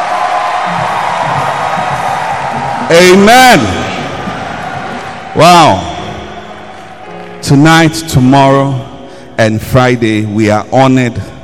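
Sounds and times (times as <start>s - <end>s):
audience voices cheering and whooping: 0.0s - 7.1s
audience clapping: 0.0s - 8.3s
speech: 2.9s - 3.8s, 5.4s - 5.9s, 7.4s - 11.3s.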